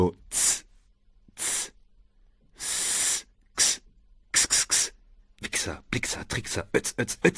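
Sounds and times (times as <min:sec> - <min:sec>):
voice imitating hissing: 0:00.2 - 0:00.7, 0:01.4 - 0:01.8, 0:02.6 - 0:05.8
speech: 0:05.6 - 0:07.3.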